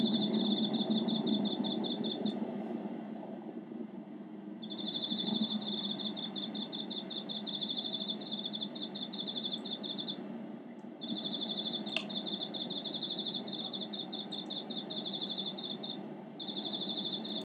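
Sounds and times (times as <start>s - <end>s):
cricket chirping: 0.0s - 2.4s, 4.6s - 10.2s, 11.0s - 17.4s
constant low hum: 0.0s - 17.4s
faint clicks: 11.9s - 12.3s.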